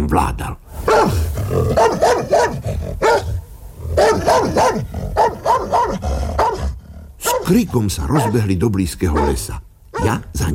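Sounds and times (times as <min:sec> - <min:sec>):
speech: 0:00.1 - 0:03.0, 0:07.5 - 0:10.5
dog barking fiercely: 0:00.8 - 0:03.4, 0:04.0 - 0:10.3.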